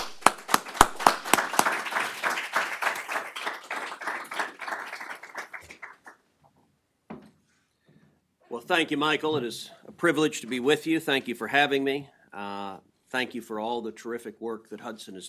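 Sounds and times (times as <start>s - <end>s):
audience applause welcoming Senator Ted Cruz to the podium at a Hudson Institute conversation: 0.0s - 6.2s
speech: 8.7s - 15.2s.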